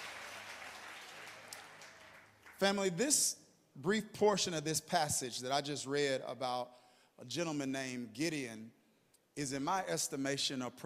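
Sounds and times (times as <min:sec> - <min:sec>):
audience clapping hands: 0:00.0 - 0:02.7
speech: 0:02.6 - 0:08.8, 0:09.4 - 0:10.8.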